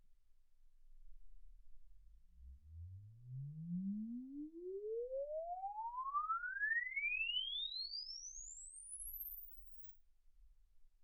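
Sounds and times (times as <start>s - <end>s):
exponential sine sweep from 10 Hz to 24 kHz: 2.4s - 9.9s.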